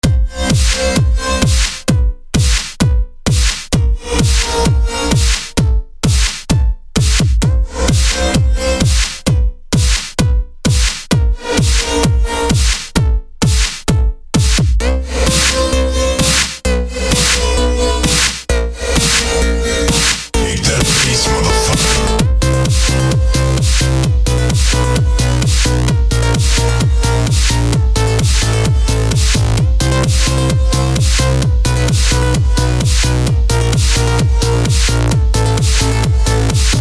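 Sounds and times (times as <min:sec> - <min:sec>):
kick drum and bass: 0:00.0 - 0:36.7.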